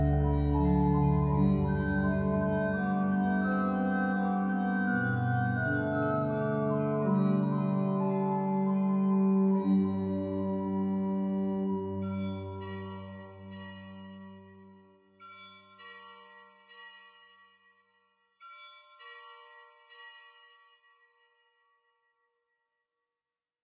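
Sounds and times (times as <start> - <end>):
pipe organ pedal and manual stops with tremulant: 0.0 - 14.3.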